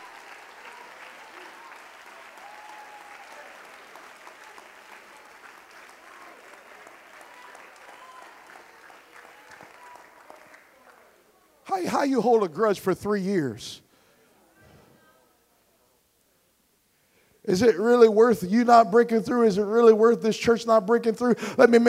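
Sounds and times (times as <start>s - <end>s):
audience clapping: 0.0s - 11.2s
speech: 11.8s - 13.8s, 17.5s - 21.8s.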